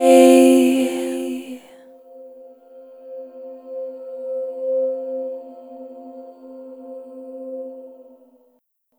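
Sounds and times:
F-C fifth chord: 0.0 - 1.7.

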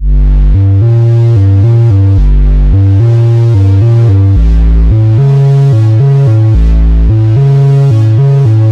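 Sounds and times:
bass line: 0.0 - 8.7.

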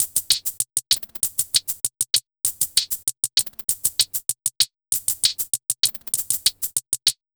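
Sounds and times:
UK hi-hat effects: 0.0 - 7.2.

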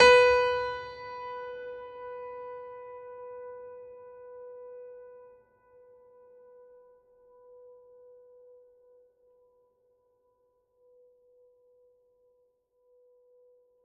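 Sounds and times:
classical piano: 0.0 - 3.9.

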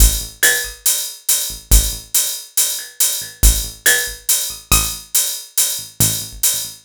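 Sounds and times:
percussion: 0.0 - 6.8.

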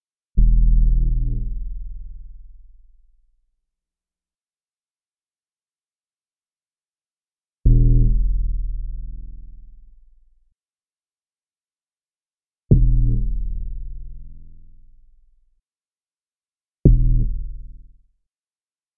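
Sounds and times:
simple sub bass: 0.4 - 2.4, 7.7 - 9.7, 12.7 - 14.7, 16.9 - 17.9.

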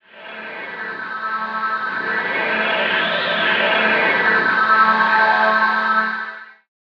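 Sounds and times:
trance loop: 0.1 - 6.4.

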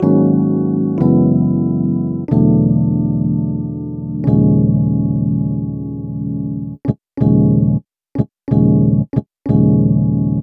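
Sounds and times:
Rhodes cinematic funk music: 0.0 - 10.4.

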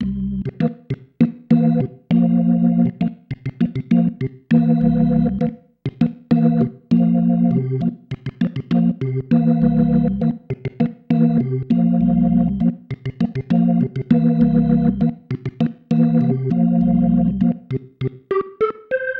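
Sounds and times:
organ pattern: 0.0 - 19.1.

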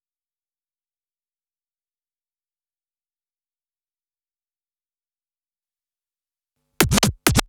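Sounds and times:
drum loop: 6.8 - 7.4
record scratching: 6.8 - 7.4.

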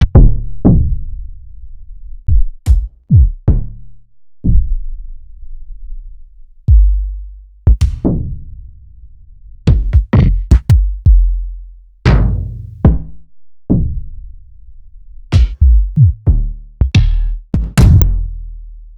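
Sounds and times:
kick drums: 0.0 - 0.9, 2.3 - 3.8, 6.7 - 7.1, 7.7 - 8.2, 9.7 - 11.4, 12.1 - 13.8, 15.3 - 18.2.

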